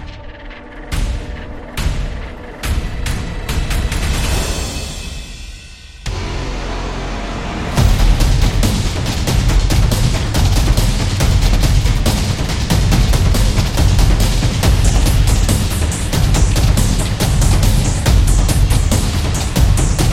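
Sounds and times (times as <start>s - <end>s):
football drums: 0.9s - 5.2s, 6.0s - 20.1s.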